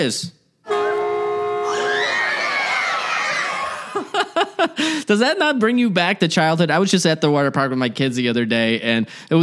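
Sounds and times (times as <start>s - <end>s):
speech: 0.0s - 0.4s, 4.0s - 9.4s
water park wave pool warning horn: 0.6s - 2.2s
children and adults cheering and screaming: 1.6s - 4.2s
laughter: 1.8s - 5.0s.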